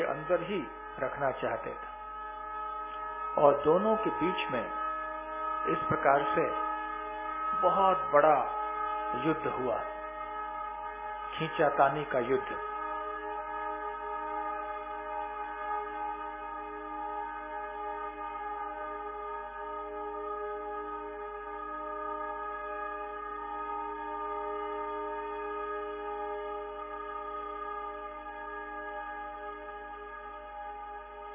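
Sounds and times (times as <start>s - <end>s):
stuck horn blaring continuously: 0.0s - 31.3s
speech: 0.3s - 1.9s, 3.4s - 4.8s, 5.6s - 6.6s, 7.6s - 9.9s, 11.4s - 12.7s.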